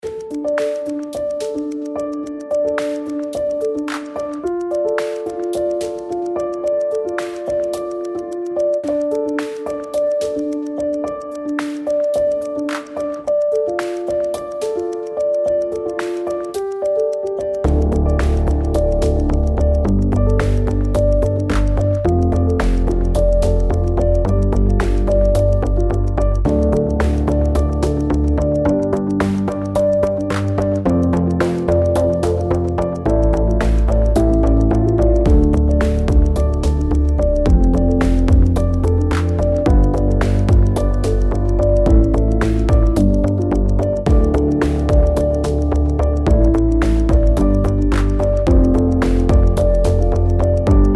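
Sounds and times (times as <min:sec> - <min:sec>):
tick in D: 0:00.0 - 0:50.9.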